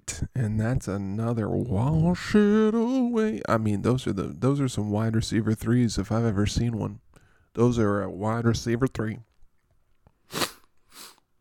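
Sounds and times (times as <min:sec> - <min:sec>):
speech: 0:00.4 - 0:09.3
sneeze: 0:10.3 - 0:10.6.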